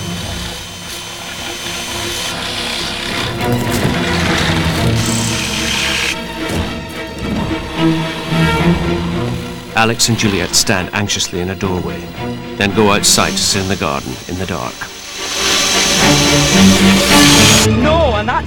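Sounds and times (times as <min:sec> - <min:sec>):
power drill drilling holes in ceiling: 0:00.0 - 0:10.8, 0:12.8 - 0:17.7
speech: 0:09.8 - 0:14.9, 0:16.0 - 0:18.4.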